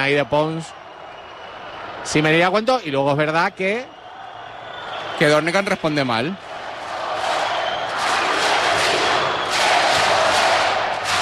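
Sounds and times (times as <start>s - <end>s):
speech: 0.0s - 0.8s, 2.0s - 4.0s, 5.2s - 6.5s
basketball arena crowd chanting for an unsportsmanlike foul: 6.4s - 11.2s.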